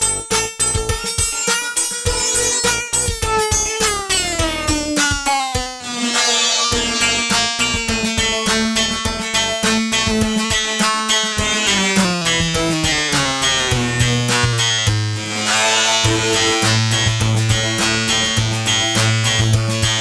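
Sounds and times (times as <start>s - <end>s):
VCO Karplus plucked string synth: 0.0s - 20.0s.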